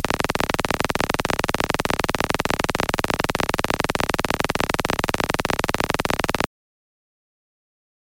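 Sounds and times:
ARP Odyssey analog synthesizer: 0.0s - 6.5s.

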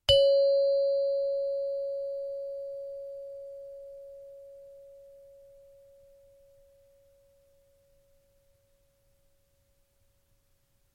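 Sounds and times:
low bell ring in C: 0.1s - 8.2s.

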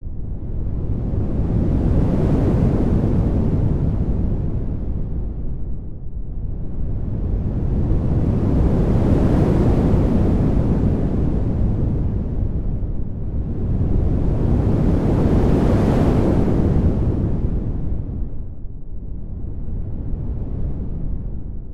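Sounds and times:
deep wind: 0.0s - 21.7s.

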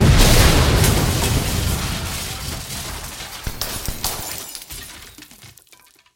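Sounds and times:
violent heavy explosion: 0.0s - 4.2s
flying glass shards: 3.4s - 5.9s.

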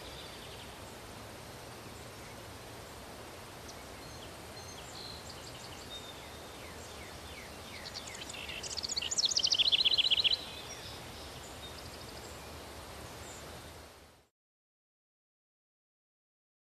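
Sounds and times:
wind in a village: 0.0s - 14.3s
birds chirping in a village: 1.8s - 13.9s.

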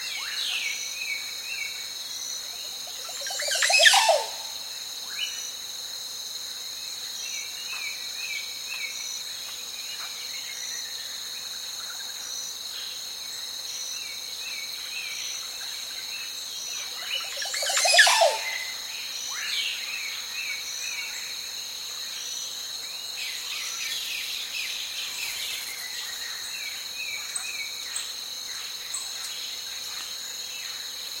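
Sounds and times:
calm cricket chirping: 0.0s - 31.1s
varied clear ringing birdsong on a lake: 17.1s - 18.7s.

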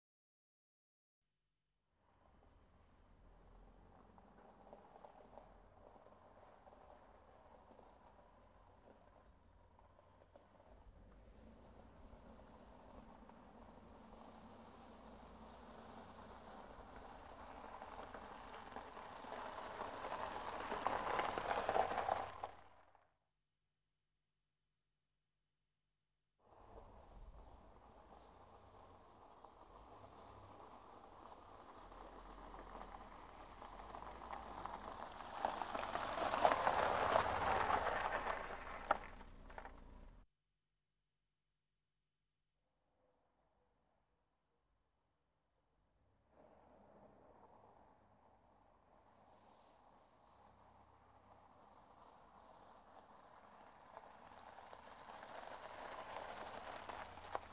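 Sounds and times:
car pulling up on wet gravel: 2.1s - 23.0s, 26.5s - 40.2s, 46.4s - 57.5s.

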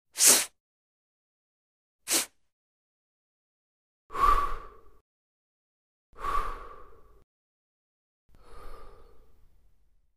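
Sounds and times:
person blowing nose: 0.2s - 0.5s, 2.1s - 2.4s
person exhaling and inhaling: 4.1s - 5.0s, 6.2s - 7.2s, 8.3s - 9.6s.

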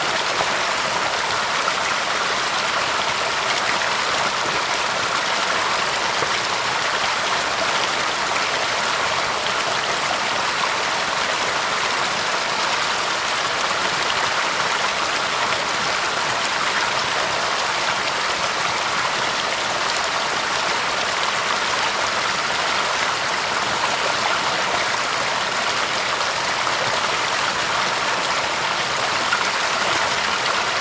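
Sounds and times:
powerful picturesque waterfall: 0.0s - 30.7s.

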